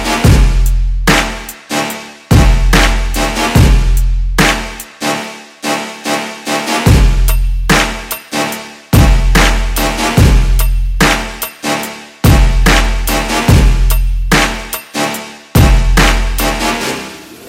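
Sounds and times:
trap beat: 0.0 - 17.3.

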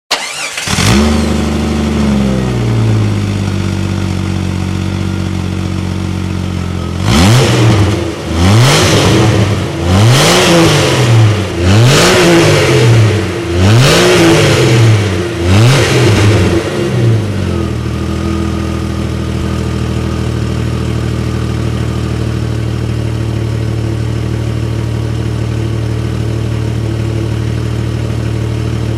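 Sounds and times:
Jeep Cherokee: 0.1 - 28.9.

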